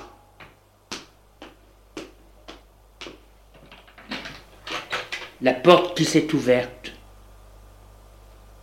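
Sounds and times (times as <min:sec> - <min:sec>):
footsteps in a corridor: 0:00.0 - 0:04.6
speech: 0:05.4 - 0:06.8.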